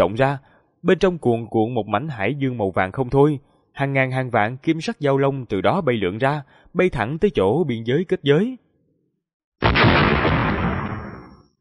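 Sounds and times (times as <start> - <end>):
speech: 0.0 - 8.6
thunderous explosion sound effect: 9.6 - 11.5.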